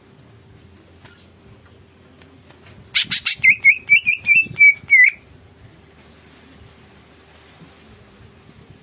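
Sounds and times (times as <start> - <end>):
Greater green leafbird singing fast chattering notes: 3.0 - 5.2.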